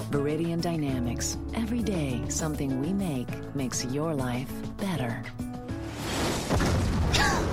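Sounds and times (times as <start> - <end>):
speech: 0.1 - 5.4
explosion of a missile hitting something: 5.9 - 7.5.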